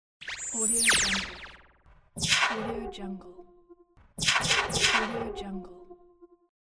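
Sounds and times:
laser gun: 0.2 - 2.9, 4.2 - 5.4.

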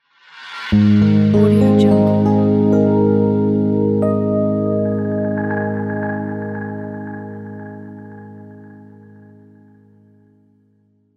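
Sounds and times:
elegant logo music: 0.7 - 9.6.

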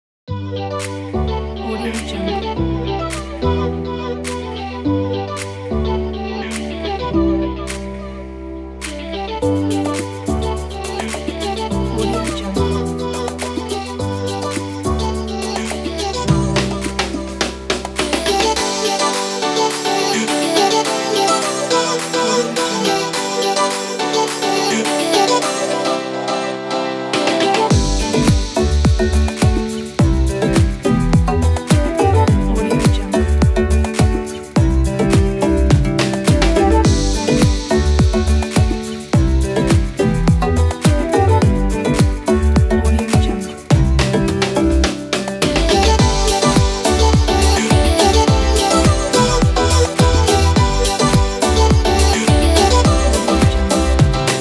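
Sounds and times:
summer tropical pop dance music: 0.6 - 54.3.

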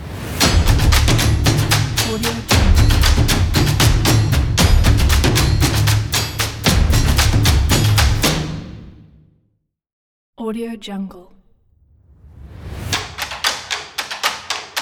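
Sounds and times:
big drum: 0.0 - 9.2, 12.9 - 14.7.

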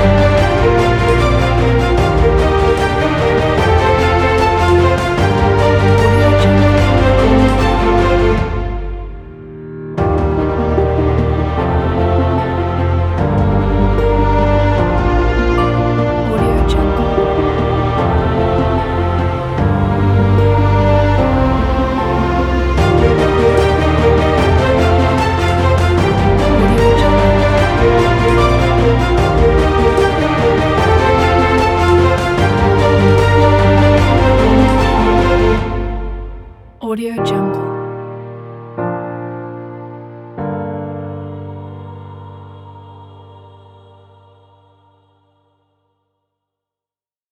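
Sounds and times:
inspiring violins: 0.0 - 9.4, 10.0 - 37.6.

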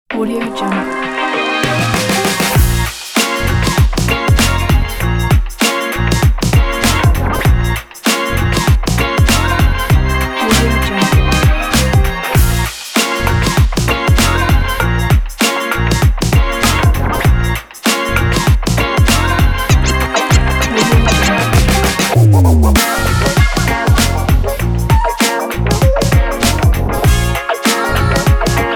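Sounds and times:
hip hop music: 0.2 - 28.7.

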